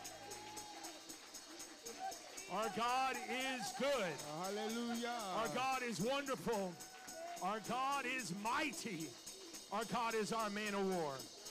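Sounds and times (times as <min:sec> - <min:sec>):
audience clapping hands in praise: 0:00.0 - 0:11.5
faint murmuring voices: 0:00.0 - 0:11.5
speech: 0:02.5 - 0:11.4.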